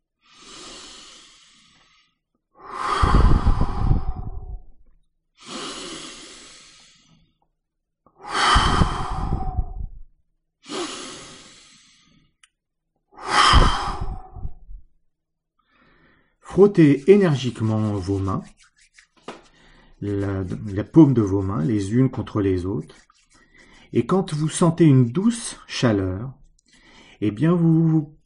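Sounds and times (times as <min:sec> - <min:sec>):
slow deep breaths in a guided relaxation: 0:00.2 - 0:07.5, 0:08.1 - 0:12.5, 0:13.1 - 0:14.9, 0:15.6 - 0:18.2, 0:19.4 - 0:21.8, 0:22.9 - 0:24.1, 0:26.6 - 0:27.2
speech: 0:16.6 - 0:18.7, 0:20.0 - 0:23.1, 0:23.9 - 0:26.4, 0:27.2 - 0:28.2.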